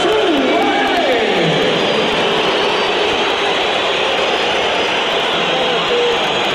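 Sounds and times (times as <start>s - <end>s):
stadium crowd whistling at a player: 0.0s - 6.5s.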